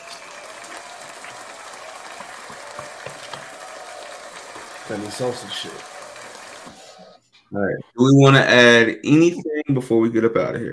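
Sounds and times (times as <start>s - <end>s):
round of applause: 0.0s - 7.1s
speech: 4.9s - 5.9s, 7.5s - 10.7s.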